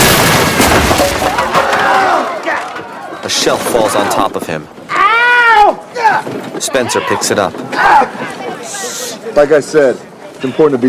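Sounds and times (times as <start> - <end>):
fridge crashing through a flimsy roof: 0.0 - 2.2
speech: 3.4 - 4.9, 5.7 - 10.8.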